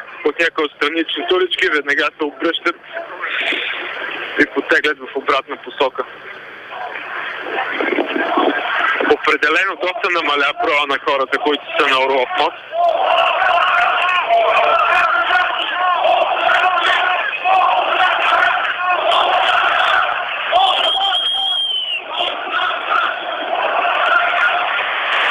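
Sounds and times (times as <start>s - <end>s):
speech: 0.2s - 3.6s, 4.4s - 6.4s, 9.1s - 13.3s
protest crowd chanting resignation: 6.6s - 10.7s, 11.3s - 25.2s.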